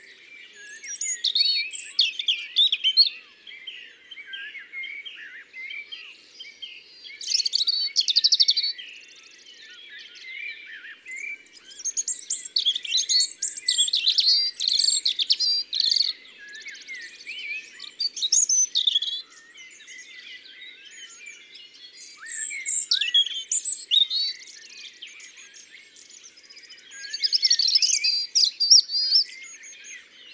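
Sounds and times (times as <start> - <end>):
European robin singing: 0.0 - 30.3
faint chirping from other birds: 0.0 - 30.3.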